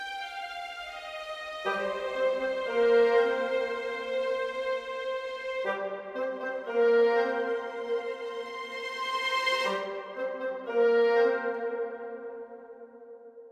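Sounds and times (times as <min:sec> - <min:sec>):
orchestra playing: 0:01.6 - 0:12.2.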